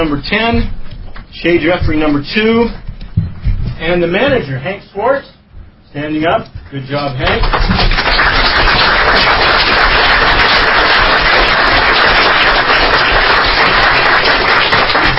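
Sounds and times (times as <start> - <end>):
speech: 0.0 - 0.8, 1.4 - 2.8, 3.8 - 8.3
crowd clapping: 7.3 - 15.1.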